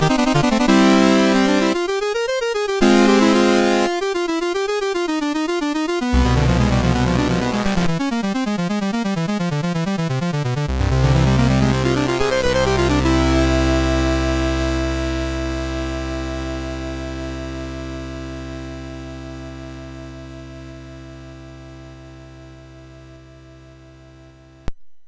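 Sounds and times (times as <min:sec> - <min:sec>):
prelude on a MOS6581R4 chip: 0:00.0 - 0:18.4.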